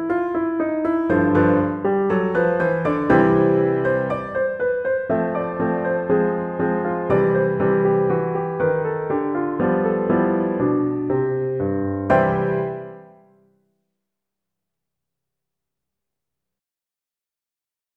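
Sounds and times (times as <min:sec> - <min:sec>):
piano piece: 0:00.0 - 0:13.6.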